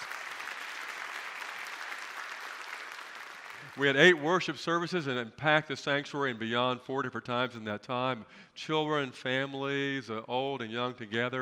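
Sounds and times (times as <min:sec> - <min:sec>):
audience applause: 0:00.0 - 0:04.2
speech: 0:03.8 - 0:11.4.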